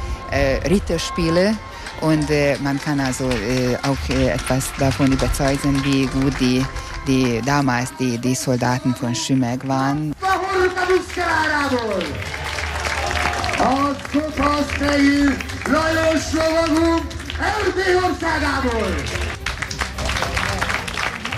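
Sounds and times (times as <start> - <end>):
speech: 0.3 - 12.4, 13.6 - 19.2
audience applause at medieval knight show: 1.7 - 7.7, 10.2 - 21.3.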